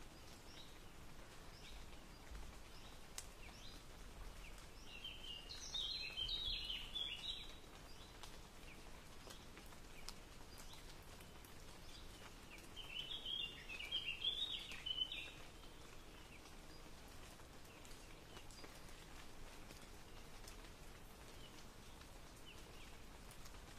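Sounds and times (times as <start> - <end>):
rain ambience: 0.0 - 23.7.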